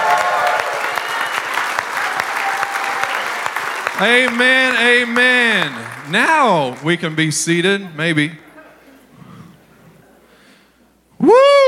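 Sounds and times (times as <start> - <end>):
crowd applauding in praise: 0.0 - 8.2
speech: 4.0 - 8.4.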